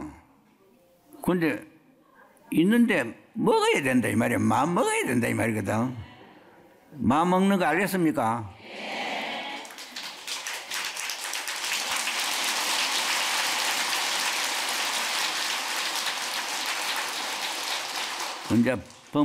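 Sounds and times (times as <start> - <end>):
speech: 1.3 - 1.7, 2.5 - 6.1, 6.9 - 8.9, 18.5 - 19.2
audience applause: 9.5 - 19.2.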